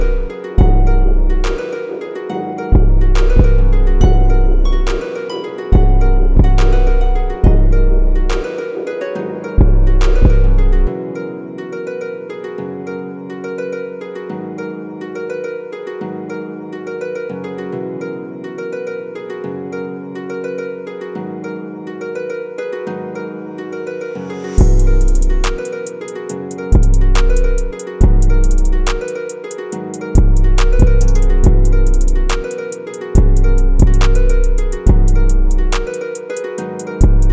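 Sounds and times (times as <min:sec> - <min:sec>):
emo beat at 140 BPM: 0:00.0 - 0:10.9, 0:24.4 - 0:37.3.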